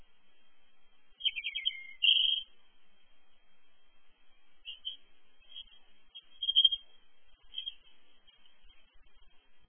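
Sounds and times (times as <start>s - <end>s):
European robin giving thin rising whistled notes: 1.2s - 2.5s, 6.4s - 6.8s.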